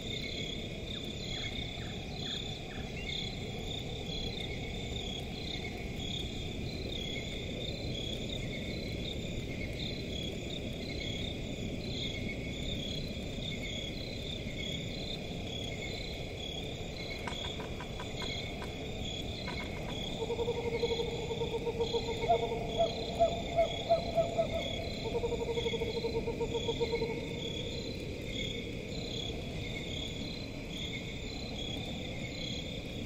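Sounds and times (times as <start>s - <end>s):
crickets chirping at night in a forest: 0.0s - 33.0s
forest at night: 0.0s - 33.0s.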